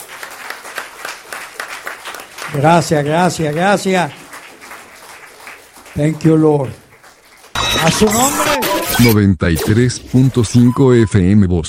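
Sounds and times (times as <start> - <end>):
church audience applauding: 0.0 - 8.7
speech: 2.5 - 4.2, 6.0 - 6.8, 7.7 - 11.6.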